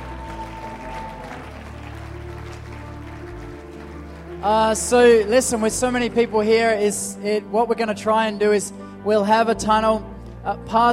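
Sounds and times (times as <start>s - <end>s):
crowd applauding: 0.0s - 5.8s
loud music track with sustained low notes: 0.0s - 10.9s
speech: 4.4s - 10.9s.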